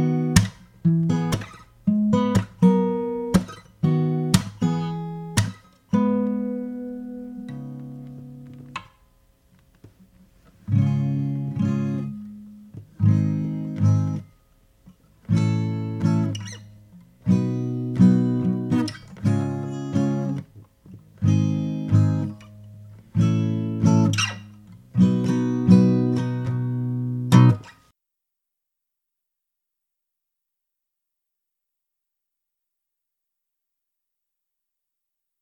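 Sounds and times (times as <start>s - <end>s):
guitar through Shure SM57 microphone: 0.0s - 27.9s.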